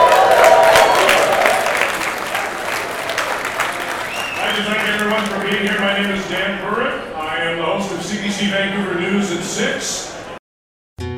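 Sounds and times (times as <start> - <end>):
audience applause at the 2017 BC Beer Awards and Festival: 0.0 - 6.6
faint crowd murmur: 1.2 - 10.4
speech: 9.5 - 10.1.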